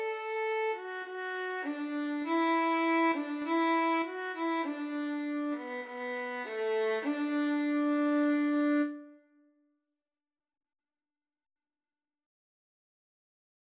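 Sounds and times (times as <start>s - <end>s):
violin and cello duet: 0.0s - 9.0s.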